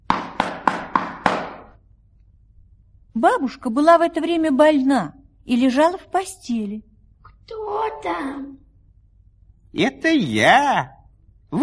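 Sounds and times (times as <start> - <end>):
knocking on a door: 0.0 - 1.8
speech: 3.2 - 6.9, 7.5 - 8.6, 9.7 - 11.6.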